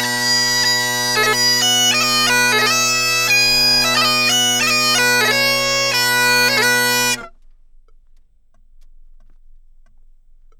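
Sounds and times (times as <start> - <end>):
bagpipes playing: 0.0 - 7.3.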